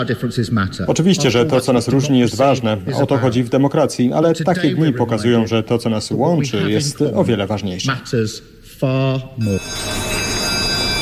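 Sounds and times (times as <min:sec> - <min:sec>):
speech: 0:00.0 - 0:10.3
bell starting a minute of silence: 0:09.4 - 0:11.0.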